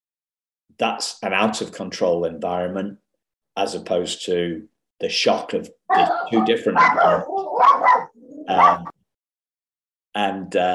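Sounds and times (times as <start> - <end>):
speech: 0.8 - 3.0, 3.6 - 8.9, 10.2 - 10.7
dog barking: 5.9 - 8.9.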